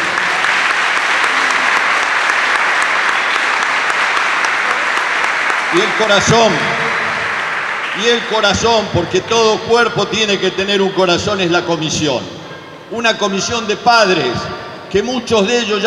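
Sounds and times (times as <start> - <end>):
audience applause: 0.0 - 8.9
speech: 5.7 - 6.8, 8.0 - 15.8.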